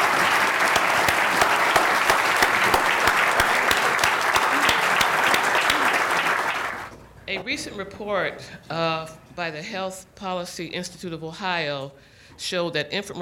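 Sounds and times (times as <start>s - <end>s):
audience applause: 0.0s - 6.9s
speech: 7.4s - 13.1s.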